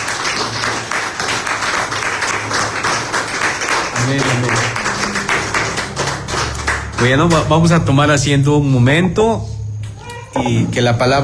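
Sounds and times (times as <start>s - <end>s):
audience applause: 0.0s - 7.8s, 10.0s - 10.4s
speech: 4.1s - 4.7s, 7.0s - 9.5s, 10.4s - 11.2s.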